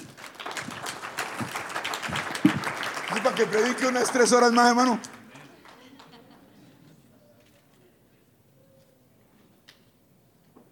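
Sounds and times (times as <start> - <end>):
audience applauding: 0.0 - 6.2
speech: 3.4 - 5.2.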